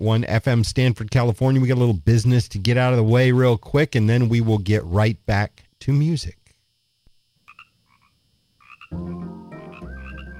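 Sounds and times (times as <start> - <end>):
speech: 0.0 - 6.4, 8.9 - 9.4
frogs croaking: 7.4 - 10.3.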